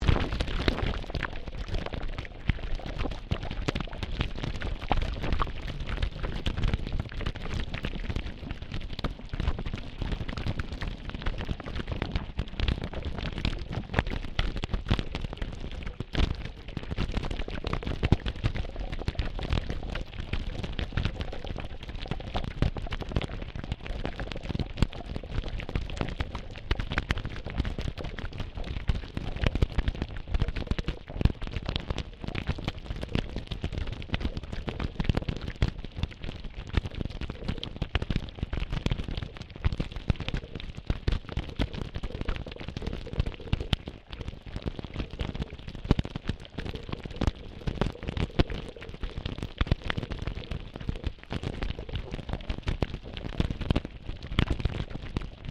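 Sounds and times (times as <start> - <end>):
waves recorded underwater on Queensland's Sunshine Coast: 0.0 - 55.5.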